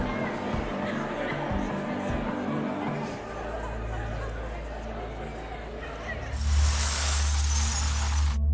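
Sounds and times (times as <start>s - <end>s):
laughter: 0.0s - 7.0s
glass bottles in bags being smashed by hand as part of a game: 6.4s - 8.4s.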